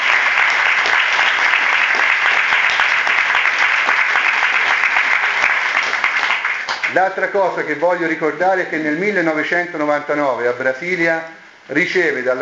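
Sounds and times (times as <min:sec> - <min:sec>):
audience applause: 0:00.0 - 0:07.0
speech: 0:07.0 - 0:12.3.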